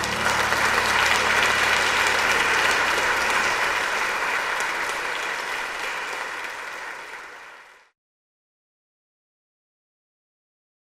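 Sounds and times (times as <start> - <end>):
pianoforte: 0.0 - 7.4.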